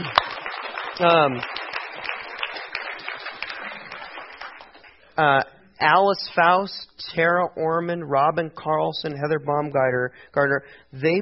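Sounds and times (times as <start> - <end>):
audience clapping: 0.0 - 5.1
speech: 1.0 - 1.6, 5.2 - 11.2.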